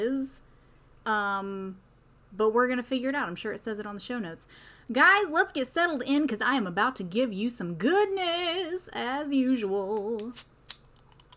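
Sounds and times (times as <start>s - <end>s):
speech: 0.0s - 10.5s
soda can cracking open: 10.2s - 11.3s.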